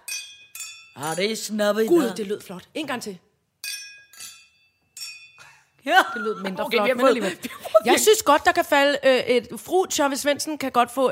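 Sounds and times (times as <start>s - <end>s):
glasses clinking in a toast: 0.0s - 2.3s, 3.6s - 5.8s
speech: 1.0s - 3.3s, 5.8s - 11.1s.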